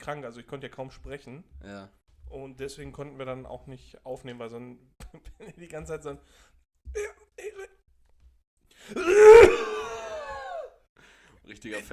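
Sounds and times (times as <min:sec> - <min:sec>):
speech: 0:00.0 - 0:07.7, 0:08.8 - 0:09.6, 0:11.5 - 0:11.9
loud coughing: 0:08.9 - 0:10.7.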